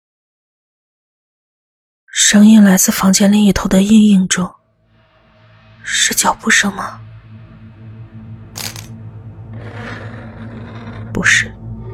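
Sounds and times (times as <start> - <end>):
speech: 2.2 - 4.6, 5.8 - 7.1, 11.2 - 11.5
metal scraping: 4.6 - 11.6
metal clinking on floor: 8.6 - 8.9.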